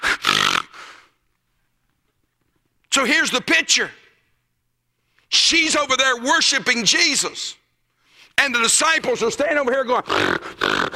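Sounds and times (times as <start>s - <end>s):
person imitating a horse snorting: 0.0s - 1.0s, 10.0s - 10.9s
speech: 3.0s - 4.0s, 5.3s - 7.6s, 8.4s - 10.9s.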